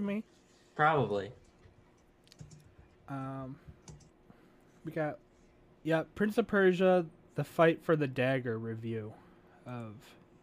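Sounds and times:
speech: 0.0 - 1.4, 3.1 - 3.7, 4.8 - 5.2, 5.8 - 10.2
keyboard typing a search on a computer: 1.5 - 3.0, 3.7 - 4.2.

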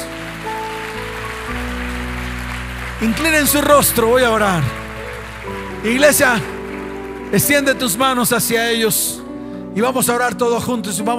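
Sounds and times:
audience applause: 0.0 - 8.8
speech: 3.0 - 4.8, 5.8 - 6.6, 7.3 - 9.2, 9.8 - 11.1.

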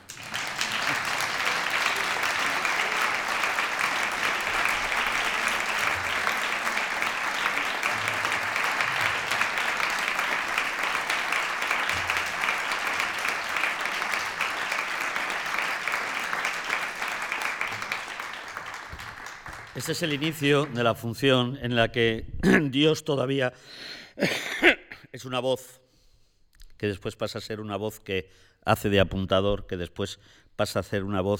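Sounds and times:
audience applause: 0.0 - 21.0
speech: 19.8 - 24.4, 25.2 - 25.8, 26.8 - 31.3.

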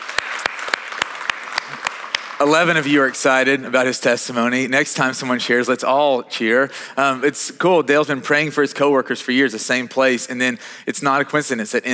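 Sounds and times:
audience applause: 0.0 - 3.2
speech: 2.4 - 11.9.

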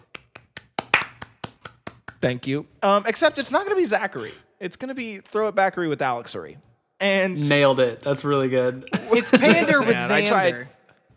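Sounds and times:
studio audience clapping: 0.0 - 2.4
speech: 2.2 - 10.8
laughter: 8.9 - 10.6.

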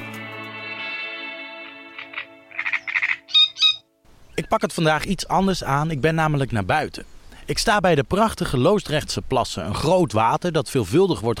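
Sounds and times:
great reed warbler singing: 2.0 - 4.5
speech: 4.4 - 11.3.

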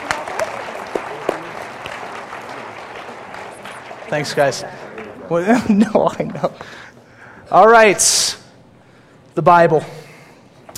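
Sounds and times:
audience round of applause: 0.0 - 5.4
speech: 4.1 - 6.8, 7.5 - 8.4, 9.4 - 10.0.

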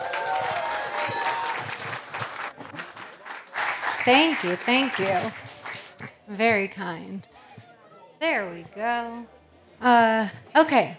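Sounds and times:
audience applause welcoming a speaker at a Nerd Nite talk evening: 0.0 - 6.0
speech: 4.0 - 5.5, 6.3 - 7.3, 8.2 - 10.9.

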